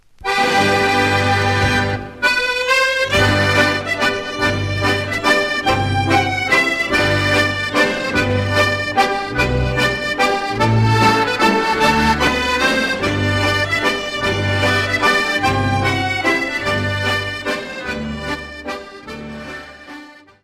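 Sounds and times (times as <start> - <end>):
Scottish country dance waltz: 0.2 - 20.4.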